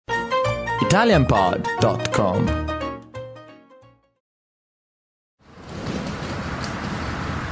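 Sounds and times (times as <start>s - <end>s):
speech: 0.8s - 2.7s
strong gusting wind: 5.5s - 7.5s.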